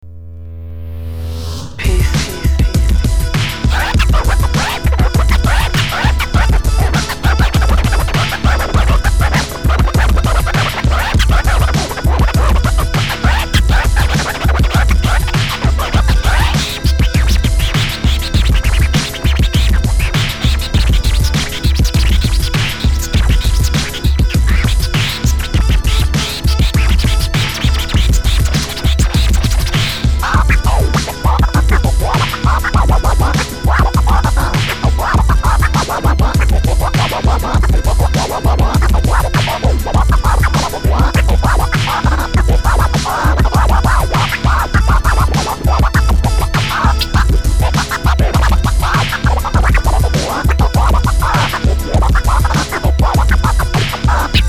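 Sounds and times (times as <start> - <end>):
music beat: 1.2 - 54.4.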